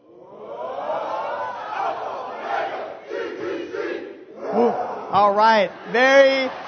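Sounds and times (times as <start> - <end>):
college campus crowd chanting: 0.0 - 6.6
speech: 5.1 - 6.6.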